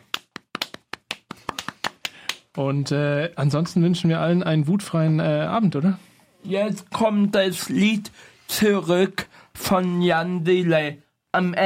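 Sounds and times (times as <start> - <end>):
small group clapping in thanks for a show's sound technician: 0.0 - 2.6
speech: 2.6 - 11.6.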